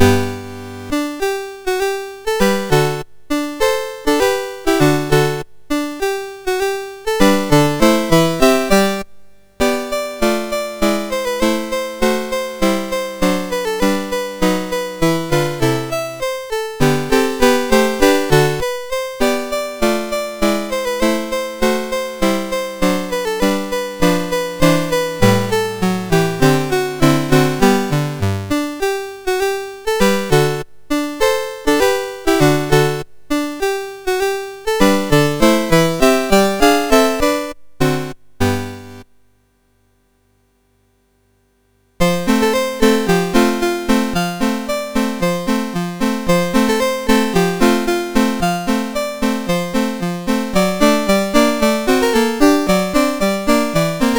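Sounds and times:
small piano pieces on MOS6581 chip: 0.0 - 39.1, 42.0 - 54.1.

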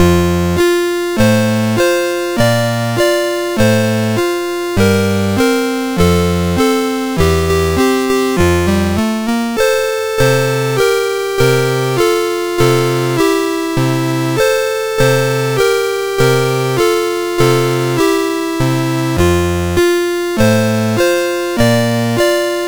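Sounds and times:
chiptune nursery rhyme melody on MOS6581R2 chip: 0.0 - 22.6.

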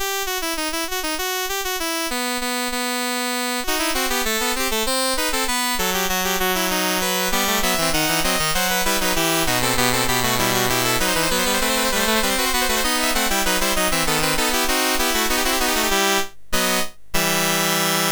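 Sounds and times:
fugue in E minor on MOS6581R3 chip: 0.0 - 18.1.

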